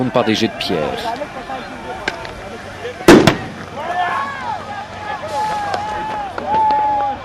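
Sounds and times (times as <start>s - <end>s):
speech: 0.0s - 1.4s
noisy crowd shouting: 0.0s - 7.2s
sharp loud bang: 3.1s - 3.6s.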